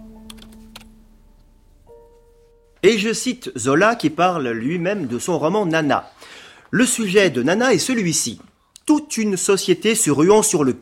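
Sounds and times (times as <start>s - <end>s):
computer keyboard typing a search into Google: 0.2s - 1.0s
speech: 2.8s - 10.7s.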